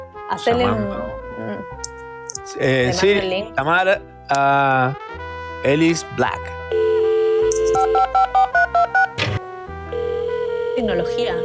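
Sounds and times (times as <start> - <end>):
speech: 0.3 - 1.8, 2.4 - 6.8, 7.9 - 9.0, 10.8 - 11.4
phone ringtone for an incoming call: 6.7 - 9.2, 9.8 - 11.4.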